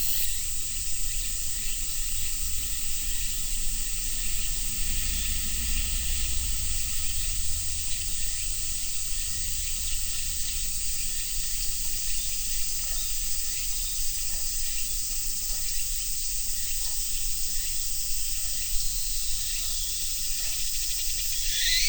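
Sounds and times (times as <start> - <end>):
cicada drone: 0.0 - 21.8.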